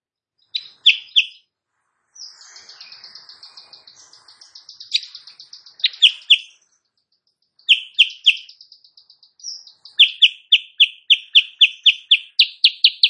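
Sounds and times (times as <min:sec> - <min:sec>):
Sooty-headed bulbul singing in the morning: 0:00.4 - 0:01.4, 0:02.2 - 0:13.0.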